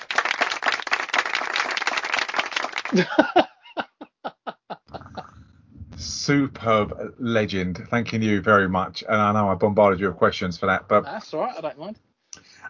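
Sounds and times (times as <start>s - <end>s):
audience applause: 0.0s - 3.4s
speech: 2.9s - 3.5s, 6.3s - 12.0s
person chuckling: 2.9s - 5.6s.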